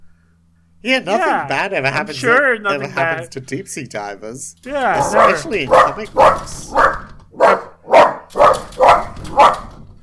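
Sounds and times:
speech: 0:00.8 - 0:07.0
dog barking: 0:04.9 - 0:09.8.

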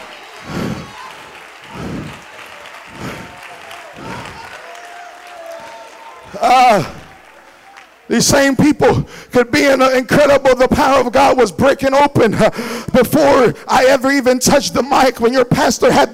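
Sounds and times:
crowd din: 0:00.0 - 0:08.0
audience clapping: 0:00.0 - 0:08.7
loud vocal cry: 0:00.4 - 0:07.2
speech: 0:06.4 - 0:07.0, 0:08.2 - 0:16.1.

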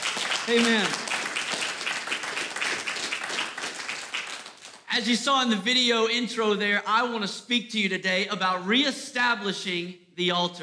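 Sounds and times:
round of applause for the church: 0:00.0 - 0:04.9
speech: 0:00.5 - 0:01.0, 0:05.0 - 0:10.6.

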